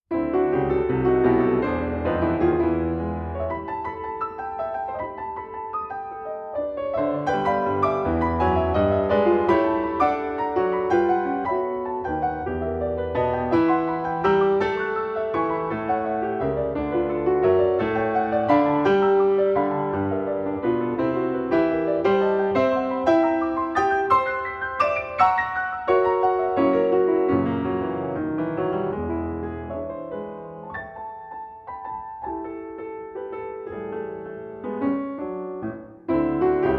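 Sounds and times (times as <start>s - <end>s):
ragtime piece in G major vivace: 0.1s - 36.7s.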